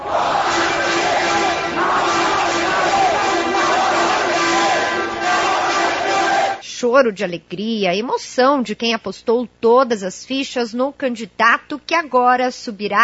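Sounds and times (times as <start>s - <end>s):
crowd shouting in celebration: 0.0s - 6.6s
speech: 6.8s - 13.0s.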